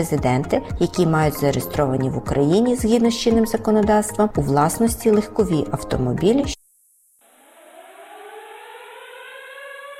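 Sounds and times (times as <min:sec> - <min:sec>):
speech: 0:00.0 - 0:06.6
air raid siren: 0:07.2 - 0:09.9.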